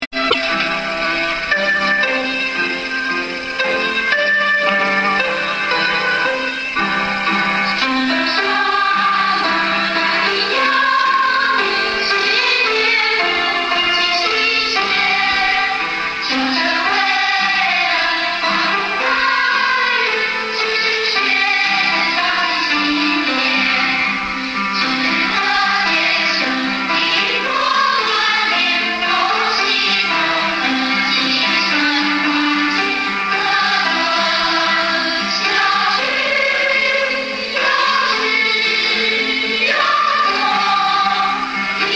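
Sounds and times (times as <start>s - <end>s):
school song: 0.0s - 41.9s.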